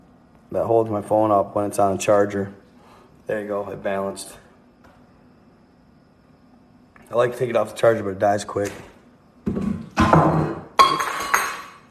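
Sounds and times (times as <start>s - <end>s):
speech: 0.5s - 2.6s, 3.3s - 4.4s, 7.1s - 8.9s
thermos coffee cup knocked over: 9.5s - 11.8s.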